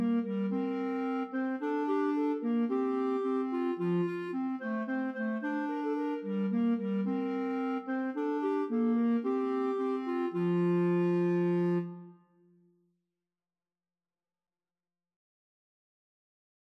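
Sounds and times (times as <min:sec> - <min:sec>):
clarinet trio: 0:00.0 - 0:12.2.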